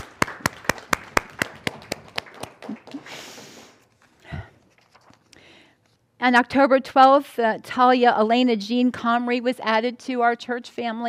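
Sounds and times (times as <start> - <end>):
audience applause: 0.0 - 3.3
speech: 6.2 - 11.0.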